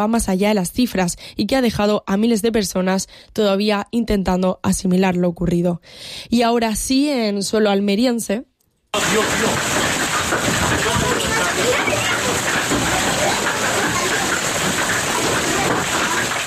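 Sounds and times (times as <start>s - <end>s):
speech: 0.0s - 10.6s
hailstorm: 9.0s - 16.4s.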